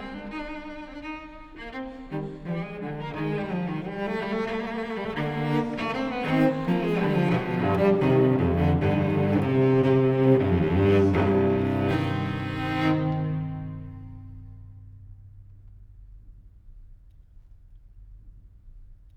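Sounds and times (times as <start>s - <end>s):
unaccompanied cello courante: 0.0s - 15.8s.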